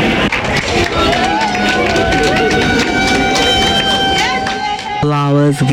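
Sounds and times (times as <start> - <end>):
crowd applause greeting arriving athletes: 0.1 - 5.7
high whistle-like tones: 2.0 - 5.1.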